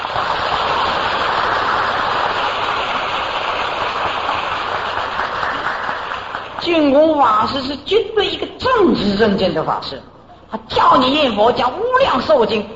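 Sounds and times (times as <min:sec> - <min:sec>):
audience applause: 0:00.0 - 0:06.6
speech: 0:07.2 - 0:12.7.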